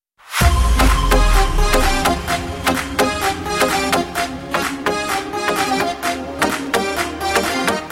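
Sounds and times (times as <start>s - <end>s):
dance music SMS tone: 0.4s - 6.7s.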